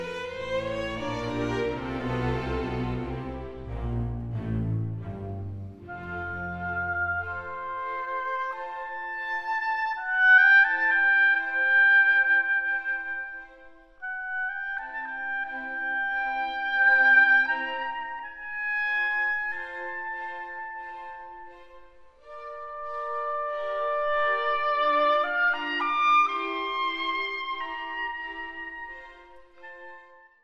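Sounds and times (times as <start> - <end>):
cello: 0.0 - 30.4
violin: 0.0 - 30.4
oboe: 5.8 - 21.5, 22.2 - 30.4.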